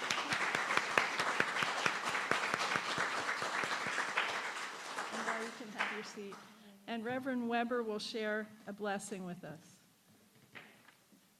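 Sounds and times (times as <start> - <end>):
audience applauding: 0.0 - 6.4
speech: 6.2 - 9.7.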